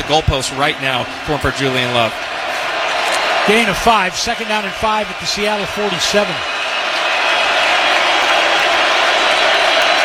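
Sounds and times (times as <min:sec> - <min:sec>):
large stadium crowd cheering: 0:00.0 - 0:10.0
speech: 0:00.1 - 0:02.4, 0:03.4 - 0:06.6.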